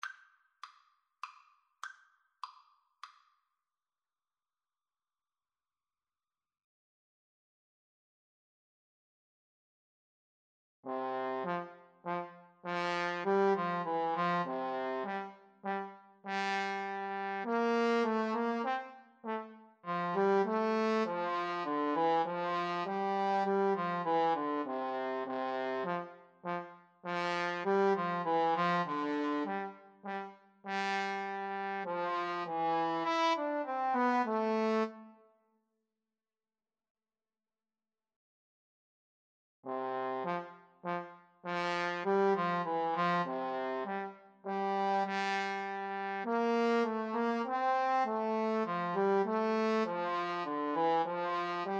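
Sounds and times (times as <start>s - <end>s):
trombone duet: 10.9s - 35.0s, 39.7s - 51.7s.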